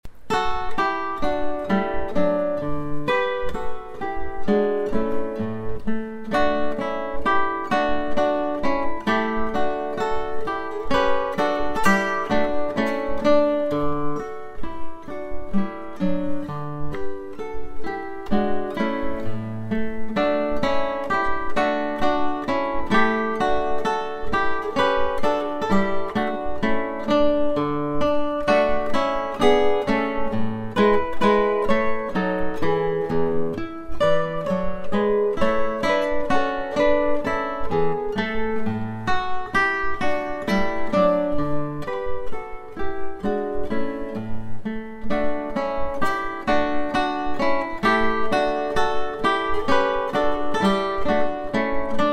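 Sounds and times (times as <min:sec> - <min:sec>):
minuet: 0:00.0 - 0:52.1.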